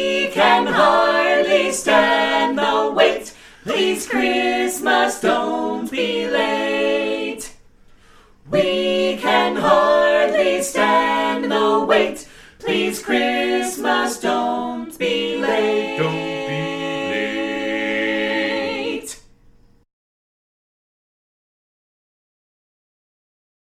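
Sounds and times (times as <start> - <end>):
carolers singing a Christmas song: 0.0 - 7.6, 8.5 - 19.3.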